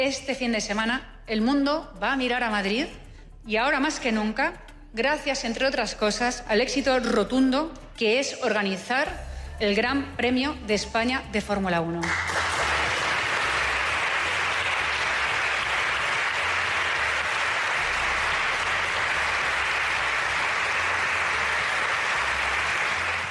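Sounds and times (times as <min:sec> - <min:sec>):
speech: 0:00.0 - 0:12.6
audience applause: 0:12.0 - 0:23.2.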